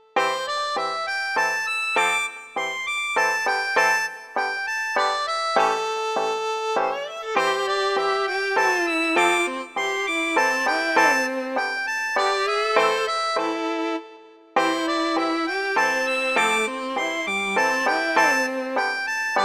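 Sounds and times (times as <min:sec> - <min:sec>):
RPG village music: 0:00.1 - 0:19.4.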